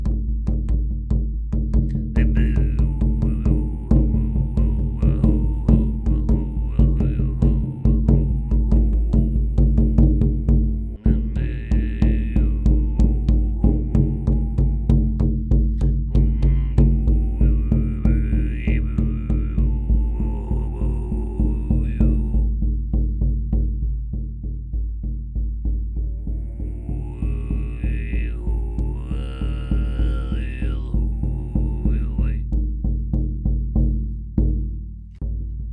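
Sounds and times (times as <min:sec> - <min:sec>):
shamanic drum beating: 0:00.0 - 0:35.7
Kargyraa style throat singing low drone: 0:01.9 - 0:22.8, 0:25.9 - 0:32.6.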